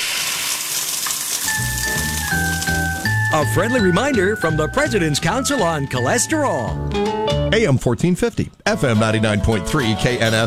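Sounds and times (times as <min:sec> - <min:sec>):
egg frying in a pan, radio ad sound effect: 0:00.0 - 0:03.3
speech: 0:03.3 - 0:10.4.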